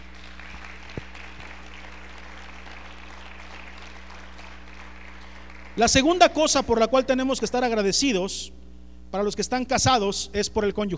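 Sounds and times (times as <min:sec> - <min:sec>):
audience applauding: 0:00.0 - 0:06.1
speech: 0:05.8 - 0:10.9.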